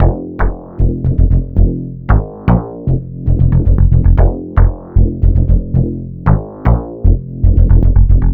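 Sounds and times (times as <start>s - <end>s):
bassline: 0.0s - 8.3s.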